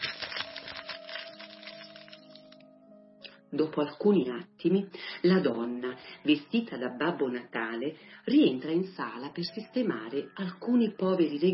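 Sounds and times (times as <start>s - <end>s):
plastic bag rustling and crinkling: 0.0s - 2.6s
speech: 3.5s - 11.5s.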